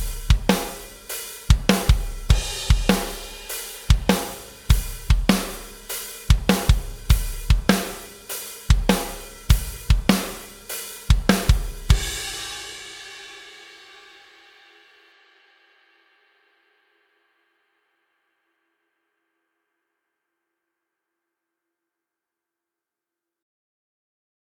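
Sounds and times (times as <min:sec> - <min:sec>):
backing track: 0:00.0 - 0:13.0.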